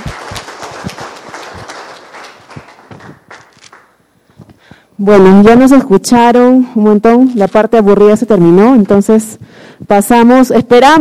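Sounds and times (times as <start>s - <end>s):
crowd applauding: 0.0s - 4.0s
speech: 5.0s - 10.9s.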